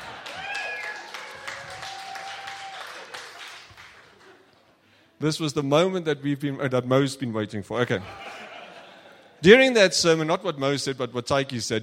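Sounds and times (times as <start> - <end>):
laughter: 0.0 - 0.8, 8.0 - 9.4
audience applause: 0.0 - 4.7
speech: 5.2 - 8.4, 9.4 - 11.8.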